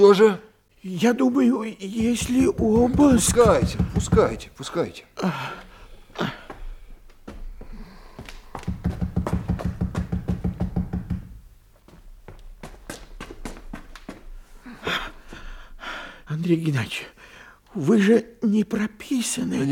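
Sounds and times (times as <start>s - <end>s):
speech: 0.0s - 6.4s, 16.4s - 17.2s, 17.8s - 19.6s
knocking on a door: 1.9s - 4.6s, 8.6s - 11.5s.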